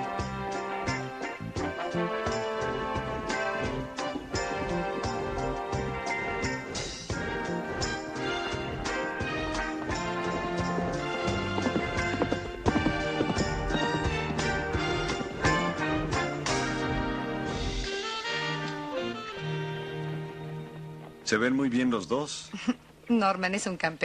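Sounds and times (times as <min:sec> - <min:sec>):
horse hooves clip-clopping at an international horse show in Hawaii: 0:00.0 - 0:17.9
loud sustained tonal music: 0:00.0 - 0:21.4
speech: 0:21.3 - 0:24.0.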